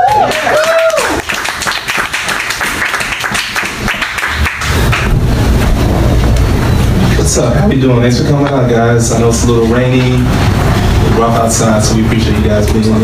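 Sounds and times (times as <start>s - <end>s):
high whoop: 0.0s - 1.3s
audience applause for comedian: 0.0s - 6.5s
speech: 7.4s - 13.0s.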